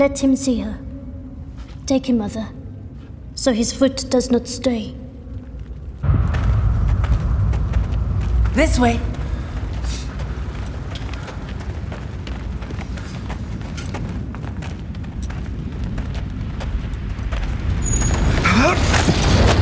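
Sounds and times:
speech: 0:00.0 - 0:00.9, 0:01.9 - 0:02.6, 0:03.4 - 0:05.0, 0:08.6 - 0:09.1
fire roaring up from a deep chasm: 0:05.6 - 0:19.6.

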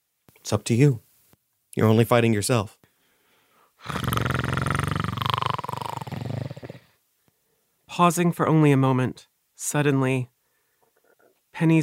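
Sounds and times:
speech: 0:00.4 - 0:01.0, 0:01.8 - 0:02.8, 0:03.8 - 0:04.1, 0:08.0 - 0:10.3, 0:11.6 - 0:11.8
long rough growl: 0:03.8 - 0:06.9.

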